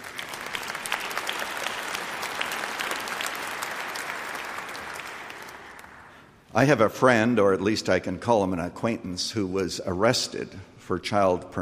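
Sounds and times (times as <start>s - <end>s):
audience clapping: 0.0s - 6.4s
speech: 6.6s - 11.5s.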